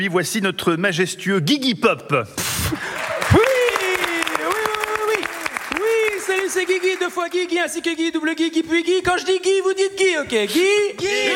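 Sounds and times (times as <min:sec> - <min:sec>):
speech: 0:00.0 - 0:03.4, 0:06.5 - 0:11.3
studio audience applause: 0:02.8 - 0:07.8.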